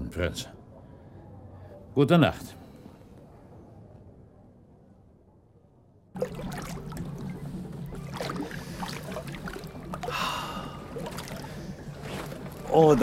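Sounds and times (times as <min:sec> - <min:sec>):
speech: 0:00.2 - 0:00.6, 0:02.0 - 0:02.6, 0:12.7 - 0:13.0
gondola oar strokes: 0:06.2 - 0:13.0
water sloshing and splashing around a rowed gondola: 0:06.2 - 0:13.0.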